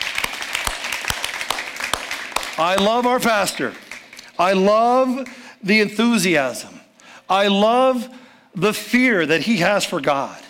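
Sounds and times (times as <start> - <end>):
audience clapping: 0.0 - 5.5
speech: 2.6 - 3.8, 4.4 - 10.4.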